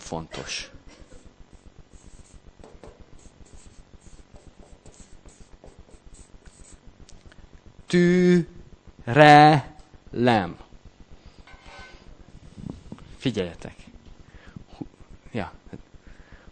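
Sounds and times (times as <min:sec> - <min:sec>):
speech: 0:00.1 - 0:00.8, 0:07.9 - 0:08.5, 0:09.1 - 0:10.6, 0:13.2 - 0:13.9, 0:15.4 - 0:15.6
pen writing capital letters by hand: 0:03.2 - 0:06.8.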